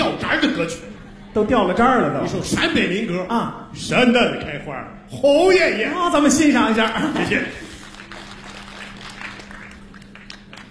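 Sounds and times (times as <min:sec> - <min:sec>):
speech: 0:00.2 - 0:07.6
laughter: 0:00.3 - 0:02.8, 0:06.6 - 0:08.0
audience applause: 0:06.6 - 0:10.6.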